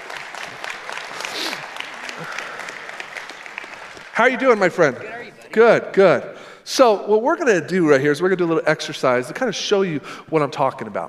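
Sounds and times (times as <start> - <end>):
audience applauding a youth pastor: 0.0 - 5.5
speech: 4.2 - 11.0.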